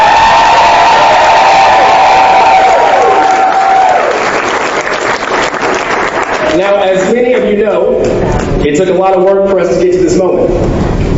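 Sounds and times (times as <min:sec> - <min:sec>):
crowd cheering and whooping at a Missouri abortion-rights rally: 0:00.0 - 0:06.8
speech: 0:06.6 - 0:10.8.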